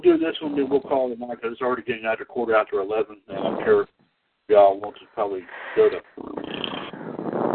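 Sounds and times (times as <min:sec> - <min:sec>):
speech: 0:00.0 - 0:03.9, 0:04.5 - 0:06.8
heavy breathing into a microphone: 0:05.4 - 0:07.4.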